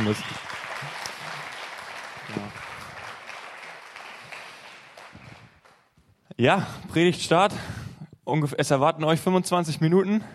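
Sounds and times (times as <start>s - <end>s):
speech: 0.0s - 0.5s, 6.4s - 10.3s
audience applause: 0.0s - 5.9s.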